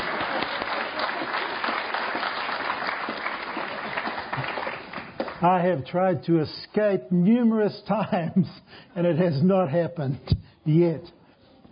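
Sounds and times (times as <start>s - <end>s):
audience applause: 0.0s - 5.4s
speech: 5.4s - 11.2s.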